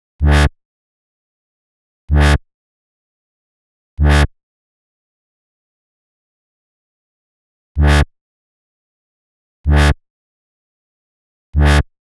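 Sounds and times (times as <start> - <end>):
G synth bass: 0.2 - 0.5, 2.1 - 2.4, 4.0 - 4.3, 7.8 - 8.0, 9.7 - 10.0, 11.6 - 11.8.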